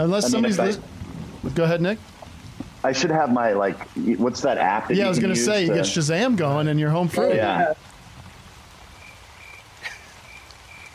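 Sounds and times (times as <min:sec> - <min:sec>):
speech: 0:00.0 - 0:02.2, 0:02.8 - 0:07.9
soft rain hiss: 0:00.0 - 0:10.9.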